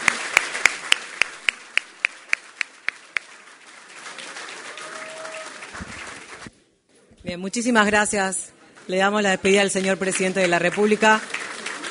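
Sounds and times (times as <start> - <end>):
audience clapping: 0.0 - 6.6, 9.5 - 11.8
speech: 7.3 - 11.8.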